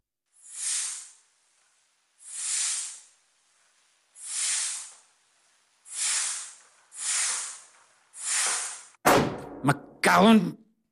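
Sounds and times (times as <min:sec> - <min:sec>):
air hissing from leaking organ bellows: 0:00.4 - 0:01.3, 0:02.2 - 0:09.0
speech: 0:09.6 - 0:10.6.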